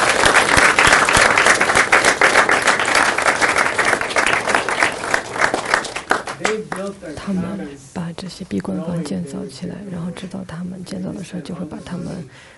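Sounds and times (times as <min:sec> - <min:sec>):
crowd applauding: 0:00.0 - 0:06.9
speech: 0:06.5 - 0:12.5.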